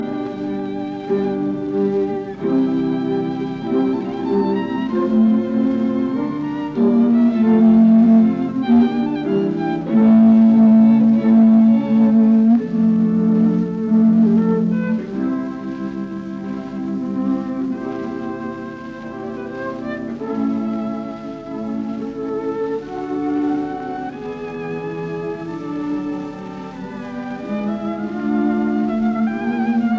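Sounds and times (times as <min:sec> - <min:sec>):
string sextet playing in B flat major: 0:00.0 - 0:29.9.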